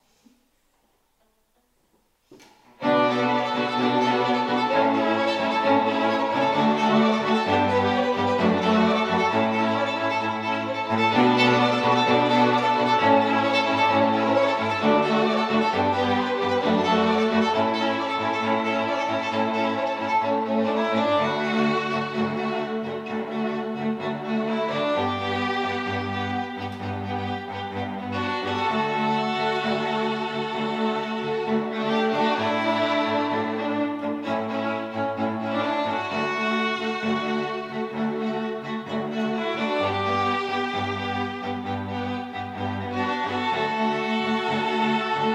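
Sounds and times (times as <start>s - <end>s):
strings: 1.1s - 45.3s.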